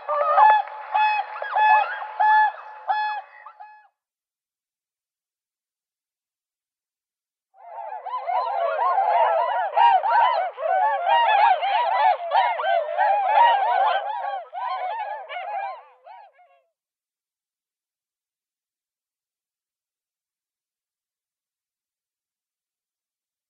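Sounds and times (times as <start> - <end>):
whooper swans calling in bugling chorus: 0.0 - 3.7, 7.7 - 15.9.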